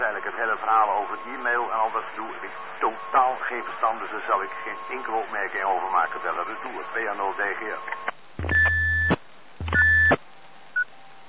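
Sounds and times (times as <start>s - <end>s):
speech: 0.4s - 8.1s
whistle tone over radio channel: 8.5s - 10.2s.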